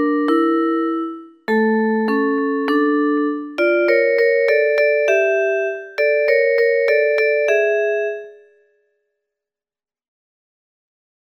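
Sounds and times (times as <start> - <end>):
toccata ringtone: 0.0 - 8.5.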